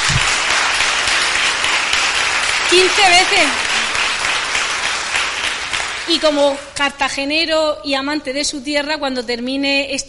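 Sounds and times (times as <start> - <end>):
applause at a press conference for a trial bike world champion: 0.0 - 6.3
speech: 2.7 - 3.7, 6.1 - 10.0.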